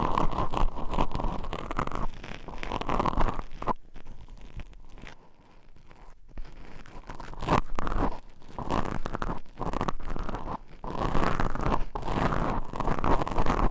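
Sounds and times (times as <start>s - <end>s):
scratching on microphone covers: 0.0s - 13.7s.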